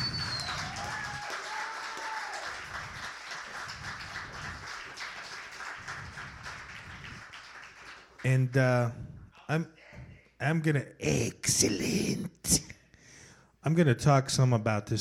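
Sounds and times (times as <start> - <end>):
high whistle: 0.0 - 1.8
audience applause: 0.0 - 8.4
speech: 8.2 - 9.8, 10.4 - 12.7, 13.6 - 14.9.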